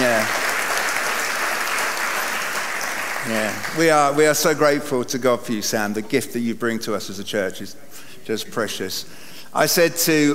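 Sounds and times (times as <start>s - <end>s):
audience applause: 0.0s - 4.2s
speech: 3.3s - 10.3s.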